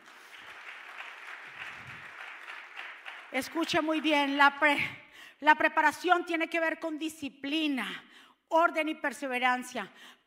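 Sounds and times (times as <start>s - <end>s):
audience applause: 0.0s - 3.6s
speech: 3.3s - 10.2s.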